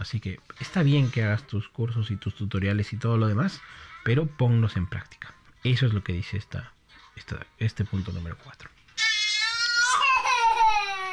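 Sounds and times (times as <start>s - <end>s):
speech: 0.0s - 8.8s
young child crying: 9.0s - 11.1s.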